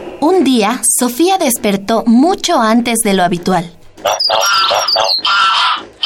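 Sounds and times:
speech: 0.3s - 3.8s
many birds squawking and chattering: 4.0s - 6.0s.

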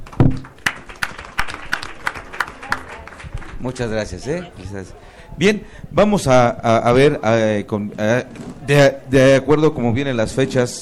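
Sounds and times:
audience clapping: 0.0s - 4.0s
speech: 3.6s - 10.7s.

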